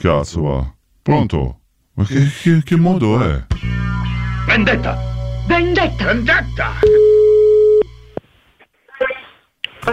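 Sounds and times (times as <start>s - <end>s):
speech: 0.0s - 3.8s, 4.5s - 7.2s
telephone busy tone after call drops: 6.8s - 7.9s.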